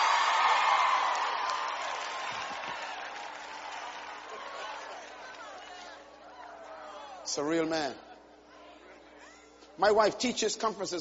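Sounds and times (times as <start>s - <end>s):
audience clapping: 0.0s - 6.2s
speech: 7.3s - 8.1s, 9.8s - 10.9s.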